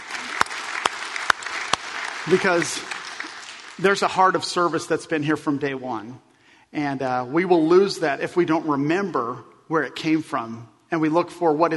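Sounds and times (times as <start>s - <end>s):
church audience applause: 0.0s - 4.1s
speech: 2.2s - 2.9s, 3.8s - 11.7s.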